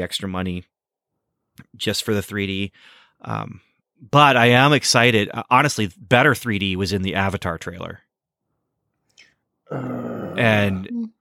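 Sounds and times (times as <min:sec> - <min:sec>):
speech: 0:00.0 - 0:00.7, 0:01.6 - 0:08.0, 0:09.7 - 0:11.1
person groaning aloud: 0:09.7 - 0:11.0.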